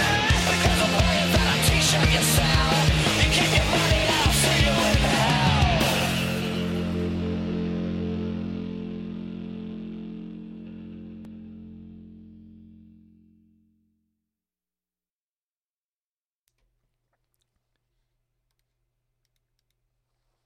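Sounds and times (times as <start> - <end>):
pop punk music: 0.0 - 12.2.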